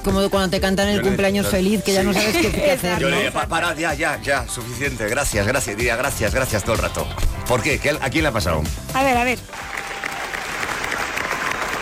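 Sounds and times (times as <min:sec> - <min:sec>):
speech: 0:00.0 - 0:09.7
long ovation applause: 0:09.4 - 0:11.8.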